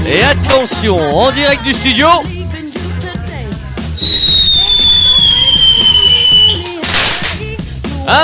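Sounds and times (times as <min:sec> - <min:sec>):
speech: 0:00.1 - 0:02.3, 0:08.0 - 0:08.2
fireworks going off indoors: 0:04.0 - 0:07.6.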